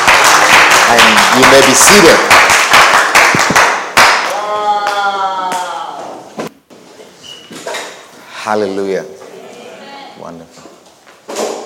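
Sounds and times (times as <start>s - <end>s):
audience clapping hands: 0.0s - 5.7s
speech: 0.9s - 2.5s, 8.5s - 9.2s, 10.2s - 10.7s.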